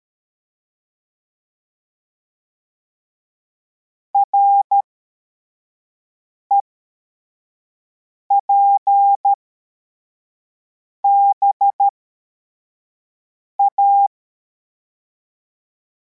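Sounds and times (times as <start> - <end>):
CW morse code beeps: 4.2 - 4.8, 8.3 - 9.4, 11.0 - 11.9, 13.6 - 14.1.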